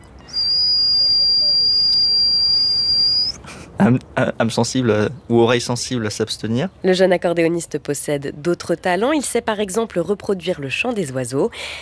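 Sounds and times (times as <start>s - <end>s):
mouth imitation of a pressure cooker whistle: 0.4s - 3.3s
speech: 3.8s - 11.7s.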